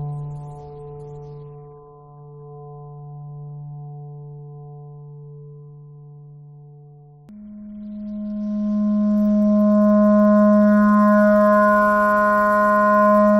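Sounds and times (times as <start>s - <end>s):
clarinet thread noise: 8.1s - 13.3s.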